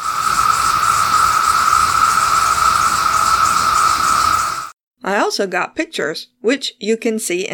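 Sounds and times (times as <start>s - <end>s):
chorus of 17-year cicadas calling: 0.0s - 4.7s
speech: 5.3s - 7.5s.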